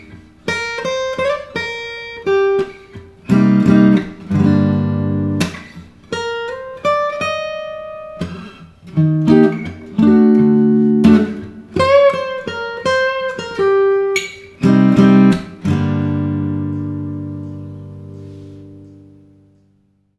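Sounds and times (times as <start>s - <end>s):
minor blues guitar: 0.0s - 19.8s.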